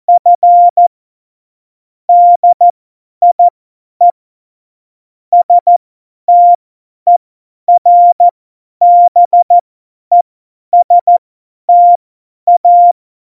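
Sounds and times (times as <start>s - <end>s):
CW Morse code beeps: 0.1s - 0.8s, 2.1s - 3.5s, 5.4s - 10.2s, 10.8s - 13.0s.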